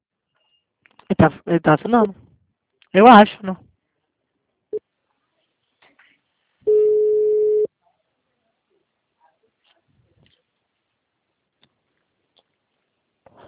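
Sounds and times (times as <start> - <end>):
speech: 1.2 - 2.2, 2.9 - 3.6
telephone tone after a dropped call: 6.7 - 7.7.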